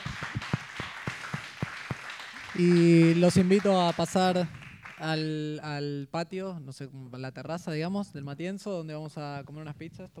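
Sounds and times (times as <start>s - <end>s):
sparse clapping: 0.0s - 5.1s
speech: 2.6s - 10.1s.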